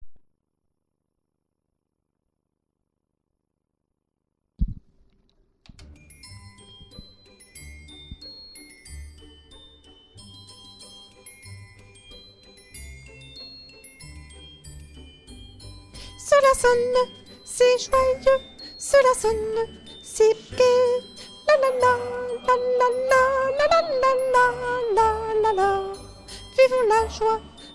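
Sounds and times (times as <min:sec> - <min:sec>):
choir singing: 0:16.3 - 0:27.7.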